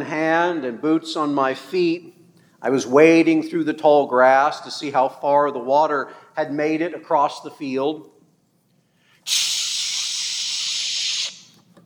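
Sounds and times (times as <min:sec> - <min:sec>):
speech: 0:00.0 - 0:08.1, 0:09.3 - 0:09.6
rattlesnake buzzing: 0:09.3 - 0:11.4.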